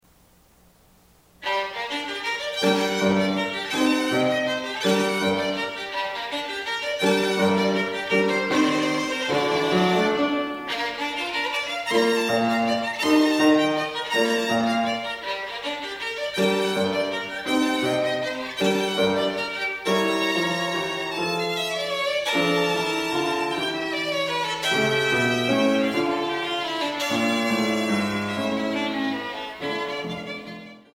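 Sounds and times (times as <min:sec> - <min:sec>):
live violin sonata in G minor allegro: 0:01.4 - 0:30.9.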